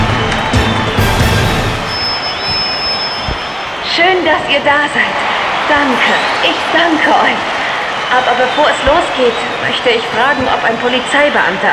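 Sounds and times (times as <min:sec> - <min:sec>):
audience cheering: 0:00.0 - 0:11.7
speech: 0:04.2 - 0:07.5, 0:08.1 - 0:11.7.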